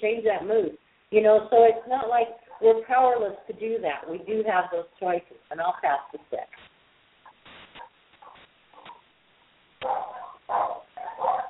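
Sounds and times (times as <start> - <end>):
speech: 0.0 - 6.7, 9.8 - 11.3
dogs barking: 2.4 - 2.8, 7.8 - 9.1, 9.8 - 11.4.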